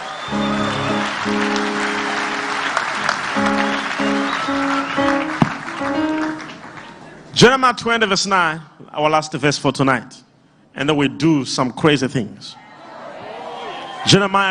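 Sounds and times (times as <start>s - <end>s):
audience clapping hands: 0.0s - 7.2s
sustained keyboard chords: 0.3s - 6.9s
speech: 7.4s - 12.6s, 14.0s - 14.4s.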